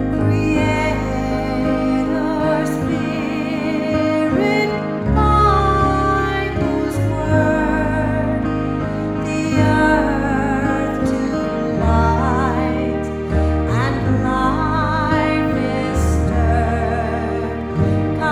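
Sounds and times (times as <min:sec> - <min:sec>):
hymn: 0:00.2 - 0:18.3.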